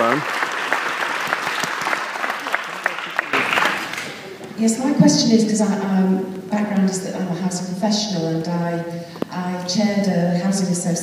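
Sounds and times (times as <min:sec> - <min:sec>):
audience applause: 0:00.0 - 0:04.5
speech: 0:04.6 - 0:11.0.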